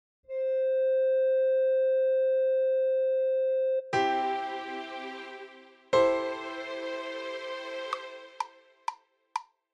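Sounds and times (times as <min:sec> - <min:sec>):
lead melody: 0:00.3 - 0:08.6.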